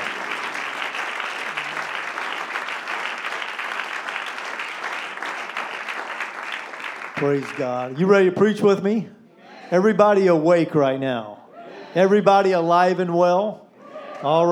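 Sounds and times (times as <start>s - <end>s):
audience hand clapping in praise: 0.0s - 8.0s
speech: 7.2s - 13.6s, 14.2s - 14.5s.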